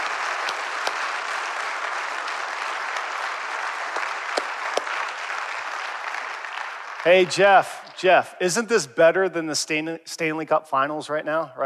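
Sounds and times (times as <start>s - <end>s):
audience clapping: 0.0s - 8.3s
speech: 7.0s - 11.6s.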